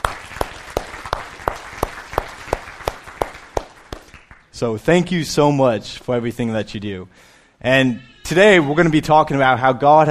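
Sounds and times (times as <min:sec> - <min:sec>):
audience applause: 0:00.0 - 0:04.5
speech: 0:04.6 - 0:10.1.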